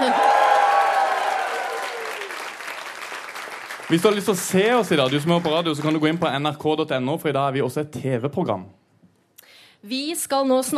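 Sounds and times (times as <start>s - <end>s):
cheering and whooping voices: 0.0s - 2.5s
audience applause: 0.0s - 6.6s
speech: 3.9s - 8.8s, 9.8s - 10.7s.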